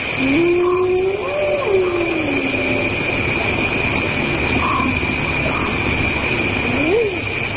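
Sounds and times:
hyenas calling at night in Africa: 0.0 - 7.3.

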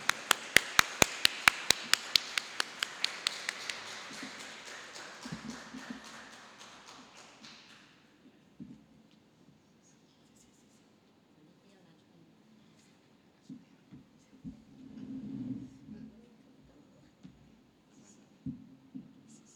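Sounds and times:
audience clapping in welcome: 0.0 - 8.0.

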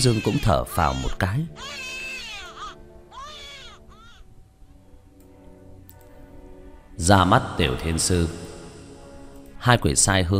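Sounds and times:
speech: 0.0 - 1.9, 7.0 - 8.5, 9.6 - 10.3
newborn baby crying in an operating room: 0.0 - 4.4.

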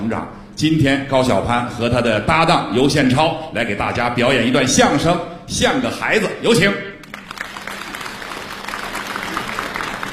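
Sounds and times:
speech: 0.1 - 6.9
audience applause: 7.0 - 10.1.

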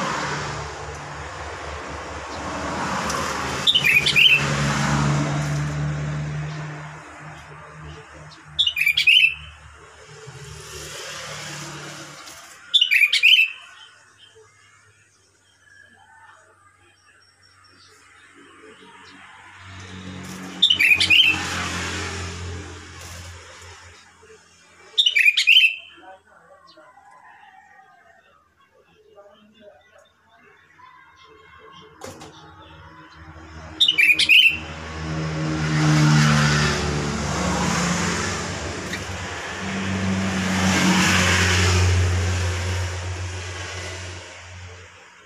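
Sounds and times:
passing vehicle rumble: 0.0 - 13.5, 17.6 - 25.6, 31.6 - 45.2
sooty-headed bulbul whistled song: 25.0 - 26.0, 33.8 - 34.6.

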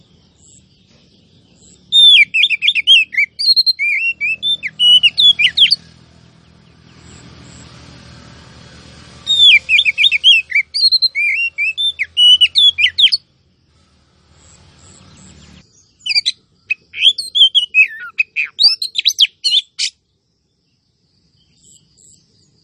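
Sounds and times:
female Oriental magpie-robin calling: 0.0 - 6.0, 9.2 - 13.3, 14.9 - 20.0.

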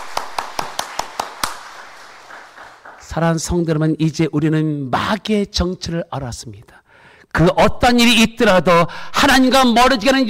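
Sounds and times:
audience applause: 0.0 - 3.1
speech: 3.1 - 10.2.

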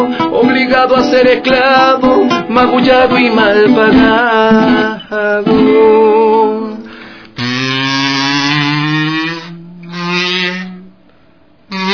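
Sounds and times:
speech: 0.0 - 6.0
fly buzzing in the studio: 7.4 - 10.9, 11.7 - 11.9.

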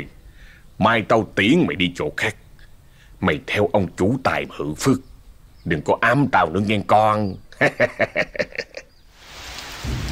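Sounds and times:
speech: 0.8 - 2.4, 3.2 - 8.8
laughter: 7.5 - 8.9
rain falling: 9.1 - 10.1.

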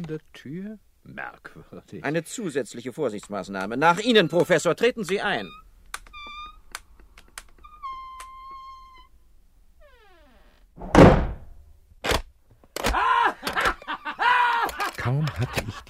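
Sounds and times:
speech: 0.0 - 5.6
door slamming shut: 10.8 - 11.6
laughter: 13.0 - 15.8.

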